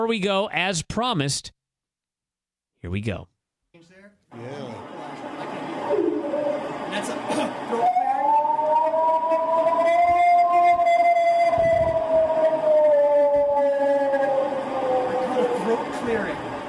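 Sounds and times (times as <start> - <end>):
speech: 0.0 - 1.6, 2.8 - 4.9, 6.9 - 8.0
recording of purported Bigfoot howl: 5.8 - 6.9, 7.6 - 16.4.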